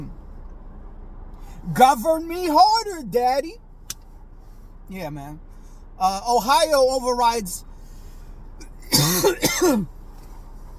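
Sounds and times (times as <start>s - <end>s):
speech: 1.6s - 3.6s, 4.9s - 7.7s, 9.2s - 10.0s
person coughing: 8.6s - 9.9s.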